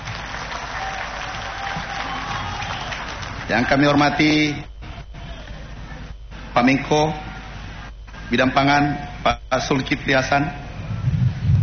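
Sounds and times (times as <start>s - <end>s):
applause: 0.0s - 4.0s
speech: 3.5s - 4.7s, 6.6s - 7.2s, 8.3s - 10.6s.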